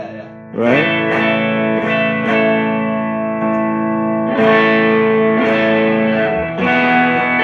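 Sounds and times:
electric guitar through a transparent overdrive pedal playing chords: 0:00.0 - 0:07.4
speech: 0:00.6 - 0:01.2.

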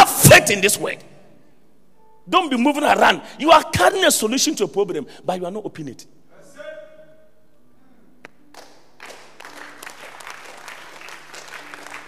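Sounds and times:
speech: 0:00.5 - 0:01.2, 0:02.3 - 0:06.2
audience clapping: 0:08.2 - 0:12.0.

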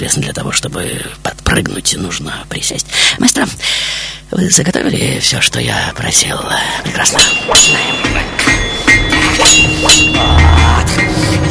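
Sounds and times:
speech: 0:00.0 - 0:08.6, 0:09.4 - 0:11.4
low rumbling: 0:06.3 - 0:11.4
hammer blows striking metal: 0:07.1 - 0:11.2.

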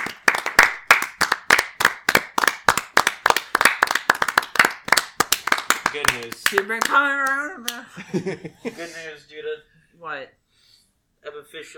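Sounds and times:
hand clapping: 0:00.0 - 0:07.8
speech: 0:05.9 - 0:10.4, 0:11.2 - 0:11.7
laughter: 0:07.8 - 0:09.0.

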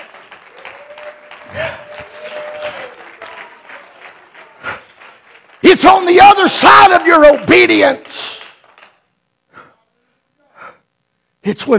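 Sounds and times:
crowd clapping hands: 0:00.0 - 0:09.1
speech: 0:05.7 - 0:08.4, 0:11.5 - 0:11.7.

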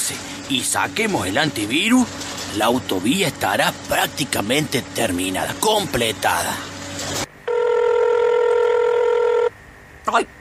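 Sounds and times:
speech: 0:00.1 - 0:06.7, 0:10.1 - 0:10.3
telephone ringing for an incoming call: 0:07.5 - 0:09.5.

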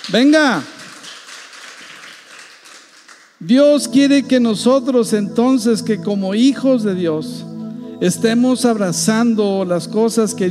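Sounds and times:
audience applause: 0:00.0 - 0:03.4
speech: 0:00.1 - 0:00.7, 0:03.4 - 0:10.4.

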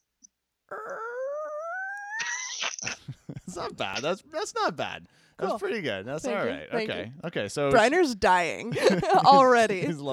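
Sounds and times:
voice imitating creaking haunted house door: 0:00.7 - 0:02.8
laughter: 0:02.8 - 0:04.2, 0:08.7 - 0:10.1
speech: 0:03.6 - 0:10.1.

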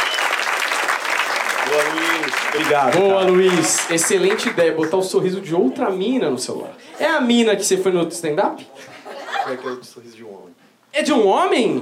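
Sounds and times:
audience clapping: 0:00.0 - 0:05.2
speech: 0:01.7 - 0:11.8
laughter: 0:08.7 - 0:10.0.

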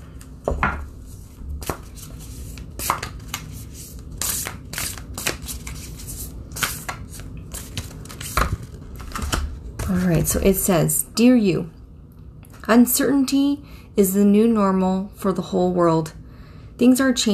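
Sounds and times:
deck of cards being shuffled and a card drawn for a reading: 0:01.1 - 0:10.4
speech: 0:10.1 - 0:11.8, 0:12.7 - 0:16.2, 0:16.8 - 0:17.3.

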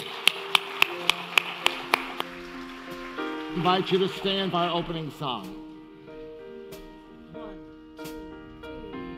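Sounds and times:
audience applauding: 0:00.0 - 0:05.2
speech: 0:03.6 - 0:05.6.

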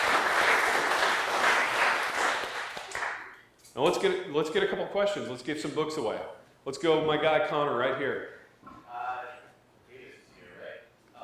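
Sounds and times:
audience applause: 0:00.0 - 0:03.3
speech: 0:03.8 - 0:08.4.

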